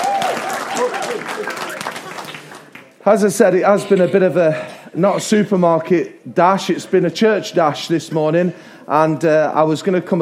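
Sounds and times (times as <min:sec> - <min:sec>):
audience applause: 0:00.0 - 0:03.0
speech: 0:03.1 - 0:10.1.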